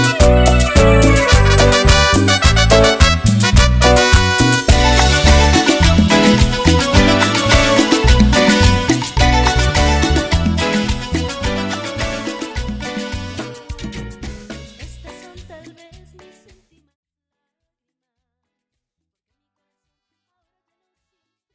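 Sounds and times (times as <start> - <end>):
trumpet intro: 0.0 - 14.2.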